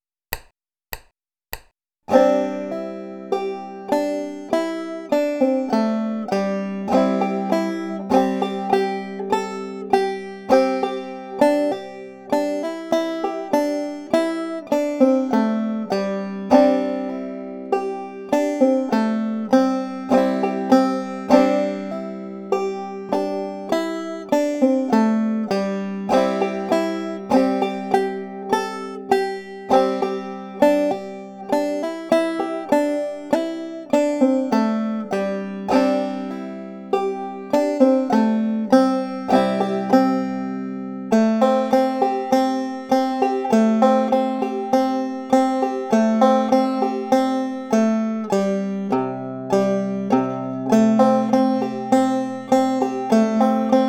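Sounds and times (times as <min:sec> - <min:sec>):
banjo playing alternating hammer-ons and pull-offs: 0:00.3 - 0:53.8.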